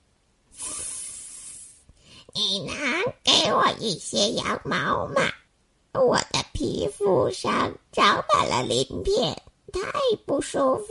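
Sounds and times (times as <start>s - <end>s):
snake hissing: 0.6s - 1.8s
speech: 2.5s - 2.9s, 3.5s - 5.4s, 6.0s - 10.9s.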